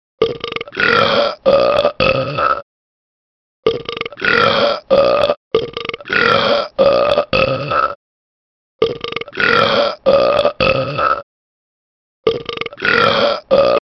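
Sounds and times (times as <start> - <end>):
person burping: 0.2 - 2.6, 3.6 - 8.0, 8.8 - 11.3, 12.2 - 13.8.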